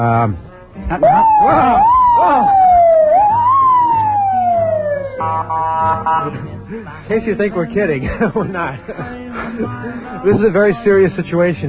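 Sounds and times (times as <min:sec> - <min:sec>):
speech: 0:00.0 - 0:02.6, 0:05.2 - 0:11.6
police car siren: 0:01.0 - 0:06.3
laughter: 0:08.0 - 0:10.5.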